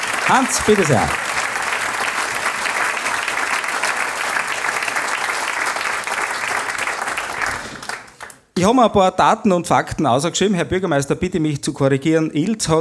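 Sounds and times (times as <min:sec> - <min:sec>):
audience applause: 0:00.0 - 0:08.4
speech: 0:00.3 - 0:01.2, 0:08.6 - 0:12.7.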